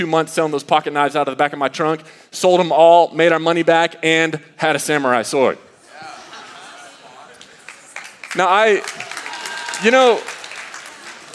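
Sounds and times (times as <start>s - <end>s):
speech: 0.0s - 5.7s, 8.4s - 9.1s, 9.8s - 10.3s
laughter: 5.8s - 8.0s
audience applause: 7.3s - 11.3s.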